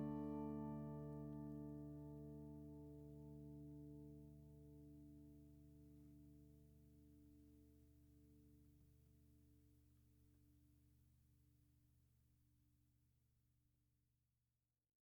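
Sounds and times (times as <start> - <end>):
guitar: 0.0 - 7.4.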